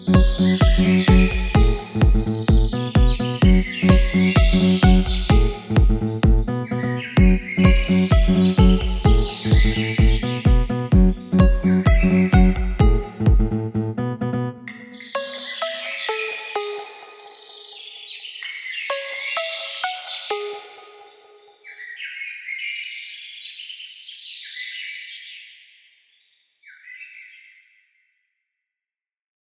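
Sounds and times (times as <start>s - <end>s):
house music mix: 0.0s - 17.6s.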